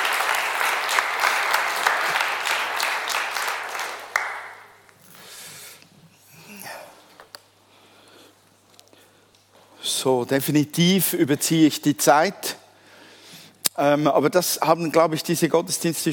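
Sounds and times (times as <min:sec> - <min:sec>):
audience applause: 0:00.0 - 0:04.8
speech: 0:10.0 - 0:12.5, 0:13.8 - 0:16.1.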